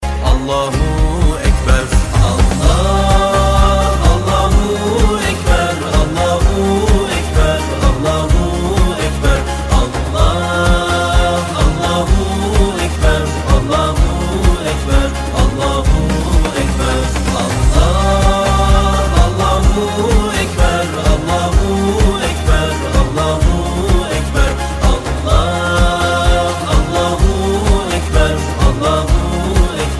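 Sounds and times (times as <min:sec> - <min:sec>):
Islamic chant: 0:00.3 - 0:29.9.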